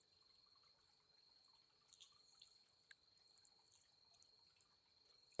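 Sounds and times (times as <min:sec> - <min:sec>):
oil massage ASMR sounds: 0:00.7 - 0:04.9.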